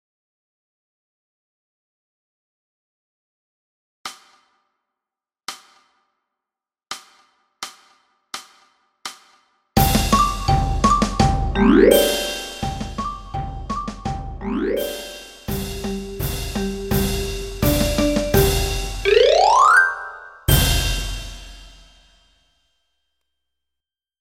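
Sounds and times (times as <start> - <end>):
percussion: 4.1 - 4.7, 5.5 - 6.1, 6.9 - 19.4, 20.5 - 22.3.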